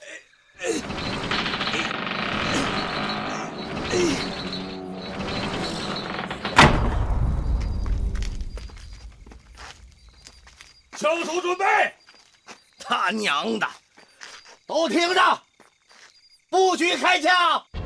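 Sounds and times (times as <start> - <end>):
drawbridge being lowered, clanking and creaking: 0.6 - 9.3
heavy thud of drawbridge: 0.8 - 10.6
deep low rumble: 2.9 - 10.6
speech: 11.1 - 12.0, 13.0 - 13.8, 14.7 - 15.4, 16.5 - 17.7.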